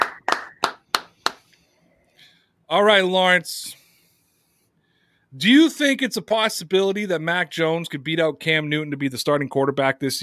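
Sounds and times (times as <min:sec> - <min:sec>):
hands clapping: 0:00.0 - 0:01.5
speech: 0:02.7 - 0:03.8, 0:05.3 - 0:10.2.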